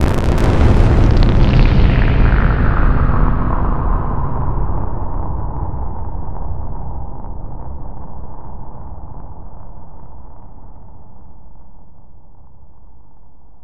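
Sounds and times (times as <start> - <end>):
cables blast: 0.0 - 4.2.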